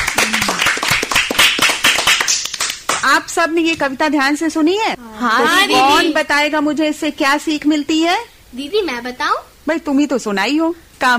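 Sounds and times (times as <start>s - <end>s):
clapping for a poem: 0.0s - 3.1s
speech: 3.2s - 11.1s.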